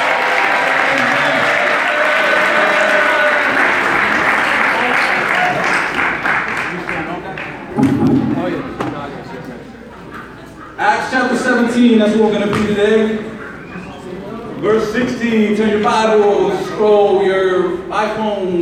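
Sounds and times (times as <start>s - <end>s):
audience applause: 0.0s - 8.7s
speech: 11.8s - 13.3s, 14.6s - 18.6s.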